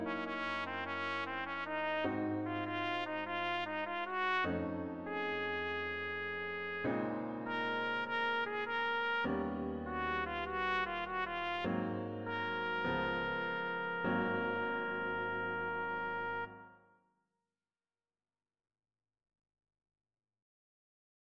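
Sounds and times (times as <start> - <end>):
blues music: 0.0 - 16.5.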